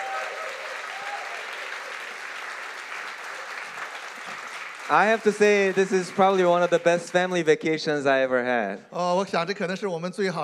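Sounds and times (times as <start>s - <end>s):
audience applause: 0.0s - 7.5s
speech: 4.9s - 10.4s.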